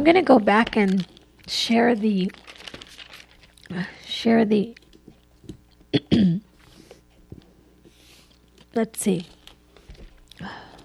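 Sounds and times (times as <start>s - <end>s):
speech: 0.0s - 2.6s, 3.7s - 4.8s, 5.9s - 6.5s, 8.8s - 9.4s
person coughing: 5.9s - 6.5s.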